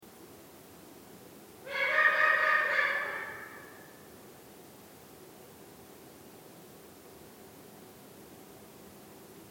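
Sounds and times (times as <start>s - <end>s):
Eurasian eagle-owl buzzy call: 1.6s - 4.0s.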